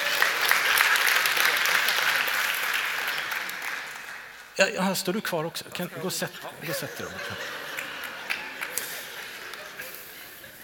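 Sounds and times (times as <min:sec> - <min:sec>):
audience applause: 0:00.0 - 0:04.5, 0:06.9 - 0:10.0
speech: 0:04.6 - 0:07.6
laughter: 0:05.9 - 0:10.6.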